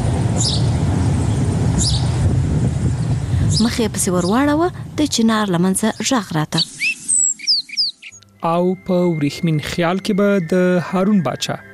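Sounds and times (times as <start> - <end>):
steady low rumble: 0.0 - 5.9
bird chirps: 0.4 - 0.8, 1.8 - 2.2, 5.8 - 10.8
speech: 0.4 - 0.8, 3.6 - 6.8, 8.4 - 11.7.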